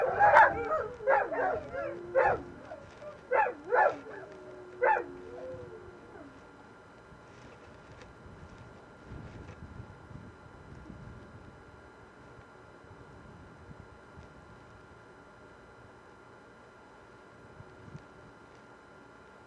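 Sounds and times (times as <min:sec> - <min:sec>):
dogs howling: 0:00.0 - 0:06.6.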